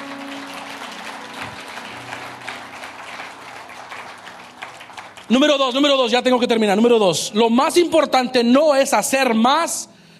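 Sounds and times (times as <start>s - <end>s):
audience applause: 0.0s - 5.9s
speech: 5.3s - 9.9s.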